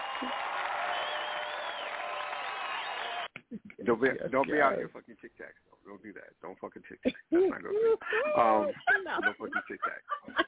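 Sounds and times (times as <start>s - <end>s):
recorded applause sound effect with crowd noise: 0.0s - 3.3s
speech: 3.5s - 10.4s
laughter: 8.0s - 10.4s.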